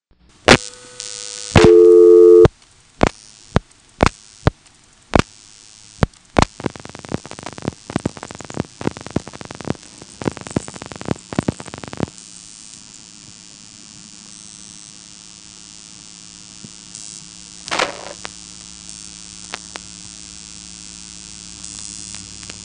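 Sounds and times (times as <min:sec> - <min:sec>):
short telephone tone: 0:00.6 - 0:02.5
rapid clicking pulses of telephone trunk dialing: 0:03.0 - 0:12.2.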